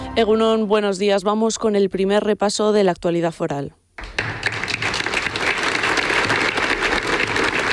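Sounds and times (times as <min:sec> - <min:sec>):
speech: 0:00.2 - 0:03.8
applause ending a large public rally in Arguedas: 0:04.0 - 0:07.7.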